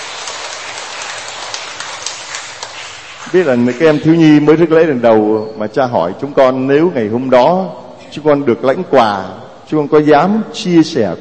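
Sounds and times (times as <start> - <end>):
applause: 0.0 - 4.4
speech: 3.3 - 11.1.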